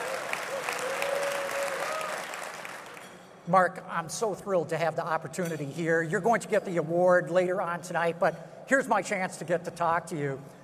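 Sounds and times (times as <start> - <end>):
crowd applause: 0.0 - 3.1
speech: 3.5 - 10.6.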